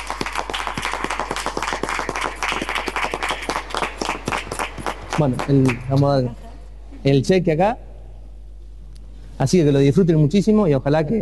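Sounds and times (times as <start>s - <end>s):
audience applause: 0.0s - 6.0s
speech: 5.2s - 6.4s, 7.0s - 7.8s, 9.4s - 11.2s.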